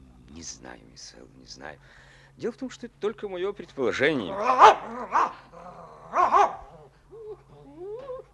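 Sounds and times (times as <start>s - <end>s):
speech: 0.4s - 6.6s
dog barking: 4.3s - 5.4s, 6.1s - 6.8s
dog whining and whimpering: 4.3s - 8.3s.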